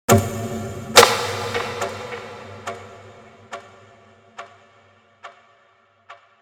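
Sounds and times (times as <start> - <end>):
hand clap: 1.0 - 3.0.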